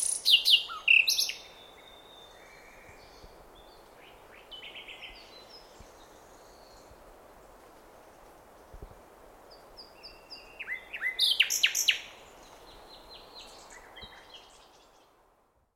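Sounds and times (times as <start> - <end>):
Luscinia megarhynchos singing: 0.0 - 6.9, 9.5 - 15.0.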